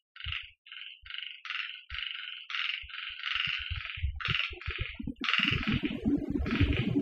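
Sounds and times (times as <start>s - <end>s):
frog calls on Okinawa: 0.2s - 6.9s.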